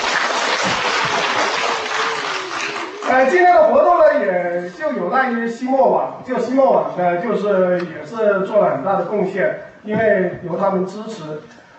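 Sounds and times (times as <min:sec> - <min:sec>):
audience applause: 0:00.0 - 0:03.5
speech: 0:03.1 - 0:11.6.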